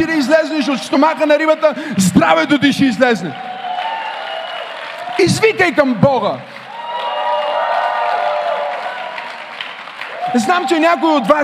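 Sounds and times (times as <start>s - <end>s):
speech: 0.0s - 3.5s, 5.2s - 6.6s, 10.3s - 11.4s
audience cheering and shouting: 0.0s - 11.4s
clapping: 3.2s - 11.4s.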